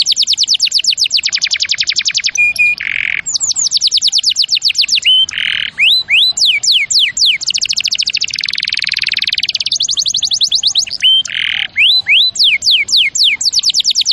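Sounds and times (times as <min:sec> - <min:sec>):
canary singing: 0:00.0 - 0:14.1.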